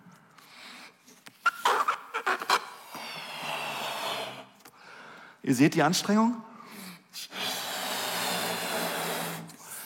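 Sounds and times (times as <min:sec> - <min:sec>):
balloon being pumped up: 0:01.2 - 0:04.7, 0:07.3 - 0:09.8
speech: 0:05.5 - 0:06.5.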